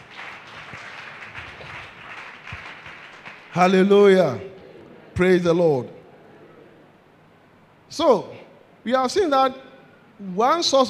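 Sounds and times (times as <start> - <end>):
audience clapping hands: 0.0 - 3.9
speech: 3.6 - 4.5, 5.2 - 6.0, 7.9 - 10.8.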